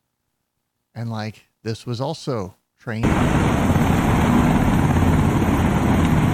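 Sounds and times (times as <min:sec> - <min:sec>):
speech: 0:01.0 - 0:04.2
Black Hawk helicopters flying: 0:03.0 - 0:06.3.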